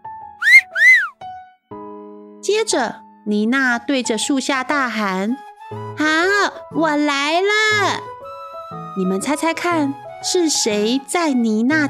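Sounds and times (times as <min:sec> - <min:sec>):
whistling from below the tree: 0:00.4 - 0:01.2
speech: 0:02.4 - 0:08.1, 0:09.0 - 0:11.8.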